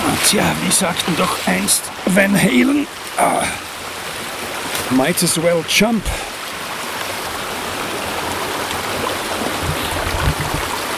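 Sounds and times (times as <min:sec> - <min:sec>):
brook water flowing: 0:00.0 - 0:10.9
speech: 0:00.2 - 0:03.7, 0:04.9 - 0:06.3.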